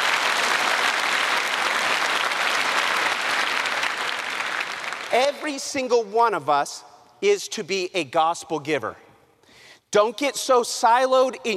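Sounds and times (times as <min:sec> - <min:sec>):
audience applause: 0:00.0 - 0:05.4
speech: 0:05.1 - 0:09.0, 0:09.9 - 0:11.5.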